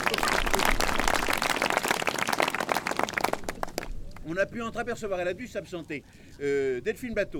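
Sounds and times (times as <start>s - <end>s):
crowd applause: 0.0s - 3.9s
speech: 4.3s - 7.3s.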